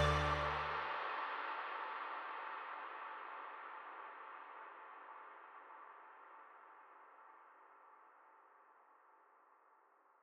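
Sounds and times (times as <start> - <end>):
Arturia MicroFreak synthesizer: 0.0 - 7.7.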